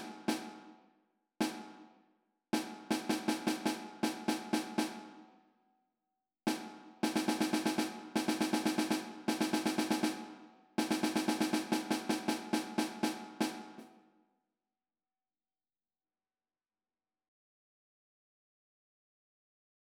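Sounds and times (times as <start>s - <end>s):
snare drum: 0.0s - 0.8s, 1.4s - 1.9s, 2.6s - 5.2s, 6.5s - 13.9s.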